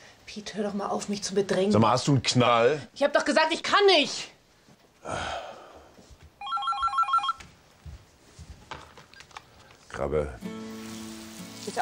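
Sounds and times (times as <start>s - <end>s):
speech: 0.4s - 4.3s, 5.0s - 5.5s, 10.0s - 10.7s
electronic telephone ringing: 6.4s - 7.4s
faint bumps and rustling: 7.4s - 9.9s.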